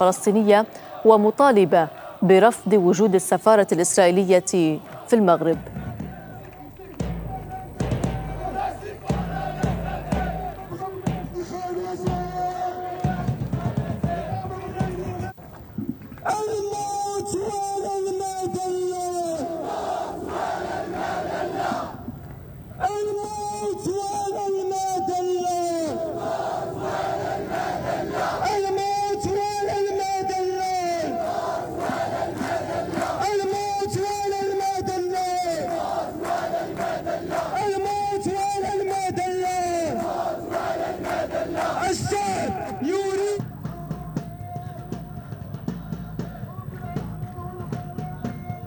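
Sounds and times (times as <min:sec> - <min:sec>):
speech: 0:00.0 - 0:05.8
protest crowd chanting slogans: 0:00.0 - 0:15.4, 0:16.3 - 0:48.6
percussive clapping or drumming: 0:04.8 - 0:15.4, 0:26.8 - 0:48.6.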